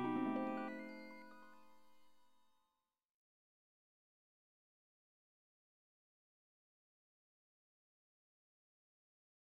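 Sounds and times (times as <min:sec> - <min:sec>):
bassoon solo: 0:00.0 - 0:00.9
harp: 0:00.0 - 0:02.1
celesta: 0:00.0 - 0:02.3
glockenspiel: 0:00.0 - 0:02.3.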